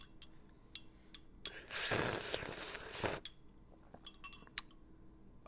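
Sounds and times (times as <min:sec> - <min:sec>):
sipping from a cup: 0:01.7 - 0:03.3.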